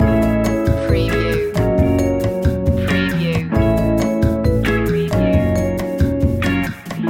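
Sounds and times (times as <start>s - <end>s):
lounge music loop: 0.0s - 7.0s.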